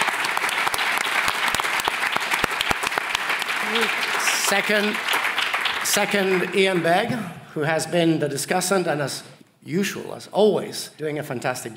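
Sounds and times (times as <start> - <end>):
audience applause: 0.0 - 7.0
speech: 3.7 - 5.2, 5.8 - 11.7.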